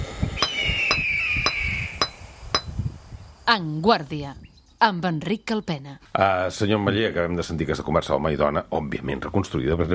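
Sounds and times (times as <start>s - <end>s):
hammer chipping stone: 0.4s - 2.7s
speech: 3.5s - 9.9s.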